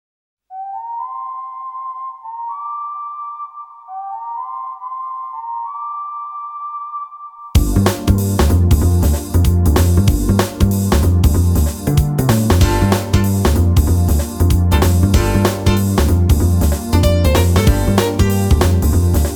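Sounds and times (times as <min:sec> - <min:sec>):
jazz version: 0:07.6 - 0:19.3.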